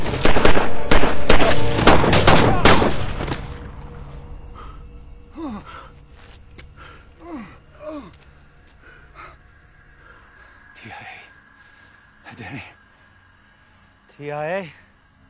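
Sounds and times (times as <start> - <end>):
gunfire in film scene: 0.0 - 3.5
speech: 14.3 - 14.8.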